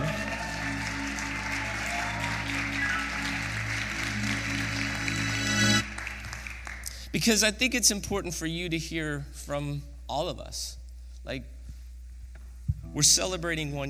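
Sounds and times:
audience applause: 0.0 - 7.2
speech: 7.2 - 11.6, 13.0 - 13.8.

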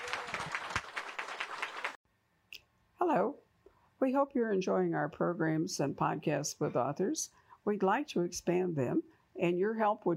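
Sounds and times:
audience applause: 0.0 - 2.0
speech: 3.0 - 3.4, 4.0 - 10.1.

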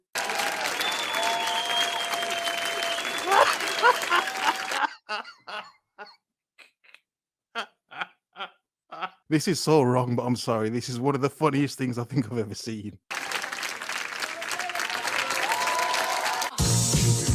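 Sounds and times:
audience clapping: 0.0 - 5.3, 13.1 - 17.1
laughter: 3.2 - 6.1, 7.6 - 9.1
speech: 9.3 - 13.1.

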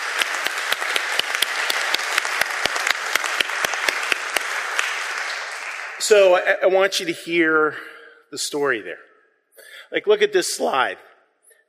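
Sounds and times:
audience applause: 0.0 - 6.4
speech: 6.1 - 9.1, 9.9 - 11.1.

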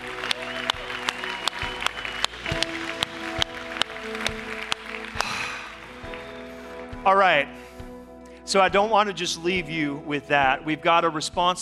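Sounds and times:
audience applause: 0.0 - 7.1
speech: 7.1 - 7.7, 8.5 - 11.6.

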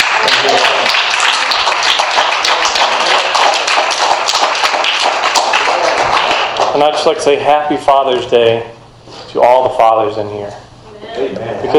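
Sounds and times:
crowd clapping hands: 0.0 - 7.1
speech: 6.8 - 10.6, 11.2 - 11.7.

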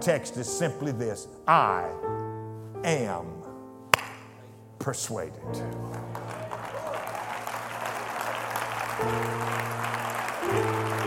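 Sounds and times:
speech: 0.0 - 2.2, 2.8 - 3.4, 4.8 - 6.2, 9.0 - 9.6
audience clapping: 5.6 - 11.0.

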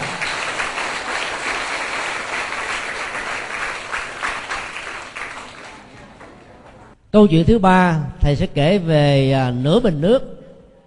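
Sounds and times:
children applauding: 0.0 - 6.8
speech: 7.1 - 10.3.

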